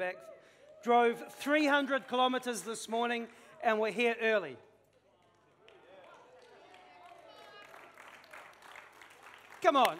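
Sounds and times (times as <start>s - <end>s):
speech: 0.0s - 4.7s, 9.6s - 9.9s
weak audience clapping: 4.8s - 9.9s.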